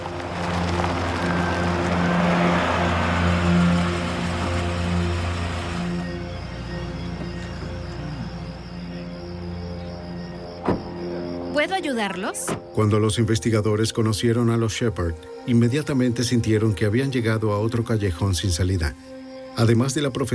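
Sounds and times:
car engine pulling up in a driveway: 0.0 - 10.6
car tire rumble: 0.0 - 11.5
speech: 11.6 - 20.3.

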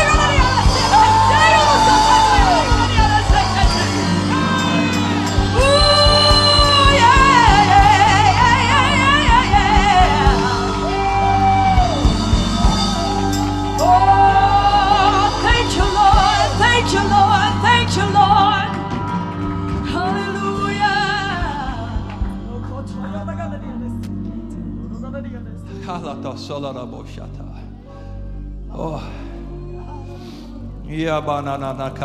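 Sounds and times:
crowd of worshippers shouting, whooping and cheering in worship: 0.0 - 23.0
speech: 31.0 - 32.0.

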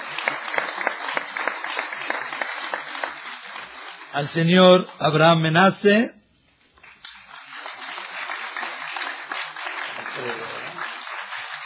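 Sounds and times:
audience applause: 0.0 - 4.4, 6.8 - 11.6
speech: 4.2 - 6.2.

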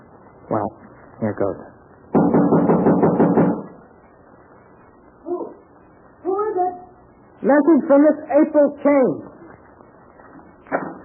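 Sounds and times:
speech: 0.5 - 1.8, 7.5 - 9.3
loud hollow knocking on a door: 2.1 - 3.7.

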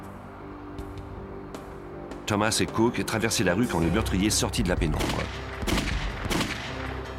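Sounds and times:
speech: 2.3 - 5.9
gunshots fired at close range: 5.0 - 7.0.

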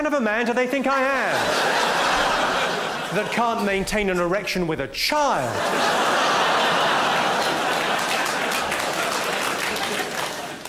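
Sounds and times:
speech: 0.0 - 1.9, 3.1 - 6.2
laughter: 1.0 - 4.3, 5.2 - 10.6
child applauding loudly: 7.7 - 10.6.

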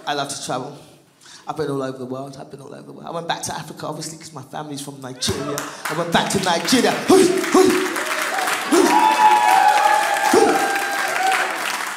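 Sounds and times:
speech: 0.0 - 7.8
audience clapping: 5.4 - 11.9
whoops from the audience: 8.0 - 11.8.

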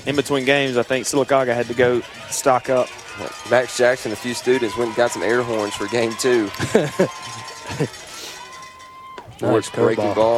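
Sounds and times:
speech: 0.0 - 8.0, 9.4 - 10.3
stadium crowd noise: 0.0 - 10.3
stadium fans ringing cowbells: 0.0 - 10.3
laughter: 1.4 - 10.3
thin sustained ringing tone: 5.4 - 9.6.

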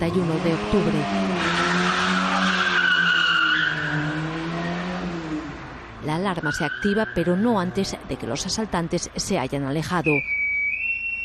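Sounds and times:
speech: 0.0 - 1.8, 6.2 - 10.4
getaway car skidding tires: 0.3 - 5.5.

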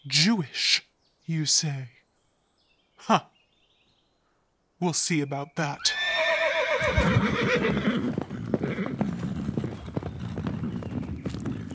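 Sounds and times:
speech: 0.1 - 2.0, 3.0 - 3.3, 4.8 - 6.0, 6.8 - 8.2
horse neighing: 5.8 - 10.0
many horse hooves clip-clopping as a king's army rides away: 6.8 - 11.7.

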